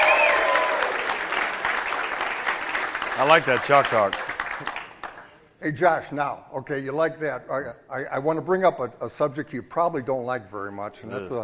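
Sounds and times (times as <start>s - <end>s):
audience clapping for a performer: 0.0s - 5.4s
speech: 3.2s - 4.8s, 5.6s - 11.4s.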